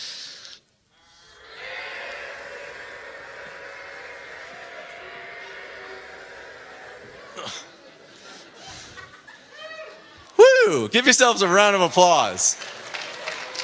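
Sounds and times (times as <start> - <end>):
crowd hissing in imitation of friction: 0.0 - 10.2
laughter: 1.4 - 10.3
speech: 7.4 - 7.7, 10.7 - 12.8.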